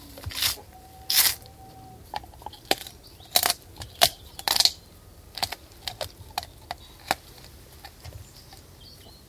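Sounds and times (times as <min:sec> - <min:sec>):
dog chewing bones outdoors: 0:02.0 - 0:08.9.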